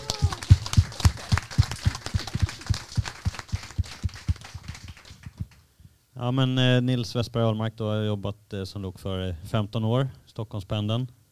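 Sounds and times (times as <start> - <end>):
audience applause: 0.0 - 5.4
speech: 6.2 - 11.2.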